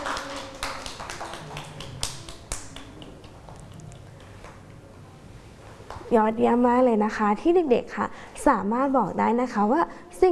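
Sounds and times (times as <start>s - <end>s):
children clapping: 0.0s - 4.6s
soft hum: 0.0s - 10.3s
speech: 6.1s - 10.3s.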